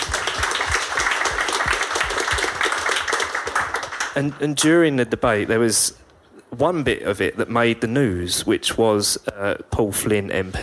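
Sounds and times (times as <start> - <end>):
applause: 0.0 - 4.6
speech: 4.2 - 10.6.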